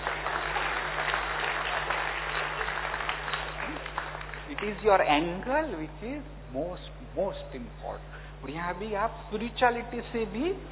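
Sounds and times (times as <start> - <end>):
audience applause: 0.0 - 4.9
speech: 4.6 - 10.7.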